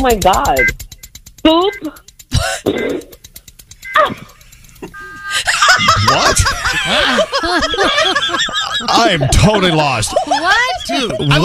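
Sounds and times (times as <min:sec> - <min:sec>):
speech: 0:00.0 - 0:00.8, 0:01.4 - 0:03.2, 0:04.0 - 0:11.4
person imitating fart noises: 0:02.3 - 0:03.2
laughter: 0:04.0 - 0:11.4.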